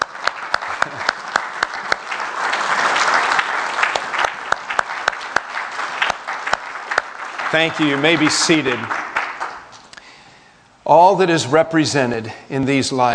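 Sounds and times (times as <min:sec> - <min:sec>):
audience applauding mothers: 0:00.0 - 0:09.9
speech: 0:07.5 - 0:09.0, 0:10.9 - 0:13.1.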